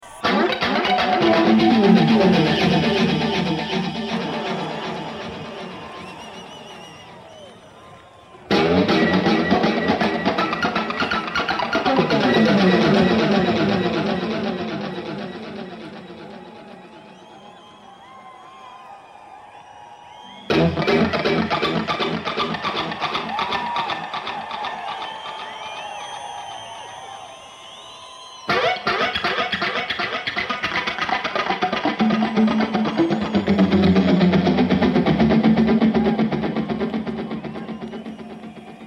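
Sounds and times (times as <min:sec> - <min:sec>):
isolated guitar: 0:00.0 - 0:07.1, 0:08.5 - 0:17.4, 0:20.4 - 0:26.8, 0:28.5 - 0:38.8.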